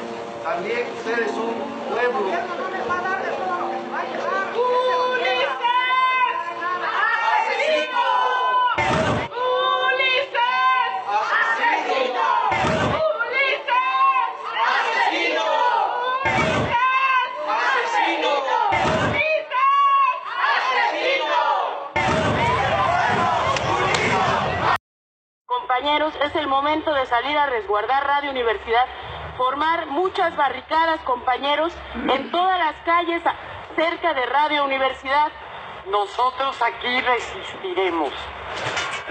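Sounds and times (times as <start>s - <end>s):
speech: 0.5s - 4.3s, 25.8s - 39.0s
street battle crowd clamoring and shouting: 2.2s - 24.8s
loud sharp slams: 8.8s - 9.3s, 12.5s - 13.0s, 16.3s - 16.8s, 18.7s - 19.3s, 22.0s - 24.6s.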